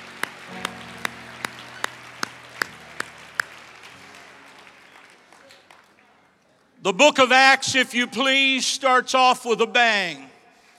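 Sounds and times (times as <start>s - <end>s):
seated audience clapping hands: 0.0s - 6.2s
speech: 6.8s - 10.3s.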